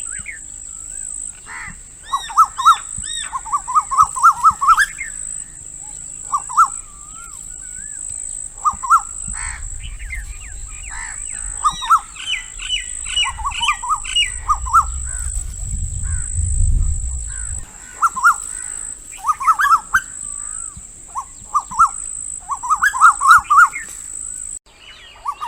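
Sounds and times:
bird ringing up-and-down calls: 0.0s - 24.6s
steady high hiss: 0.0s - 24.6s
low rumbling background: 6.8s - 17.8s.

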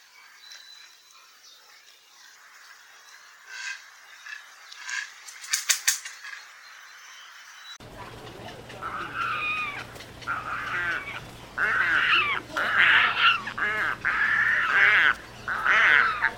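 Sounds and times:
pelican calling: 7.9s - 16.3s.

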